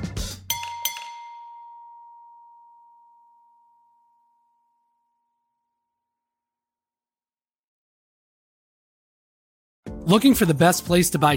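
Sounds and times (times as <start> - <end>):
bell ding: 0.5 - 6.1
speech: 10.1 - 11.3.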